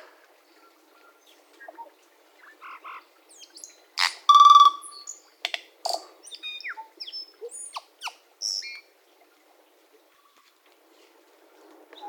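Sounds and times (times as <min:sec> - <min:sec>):
tui song: 0:00.5 - 0:08.9.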